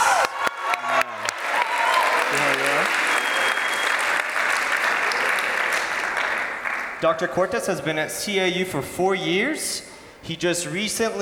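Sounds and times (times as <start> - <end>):
audience applause and cheering for a speaker at a university chapel service: 0.0 - 7.0
speech: 7.0 - 11.2.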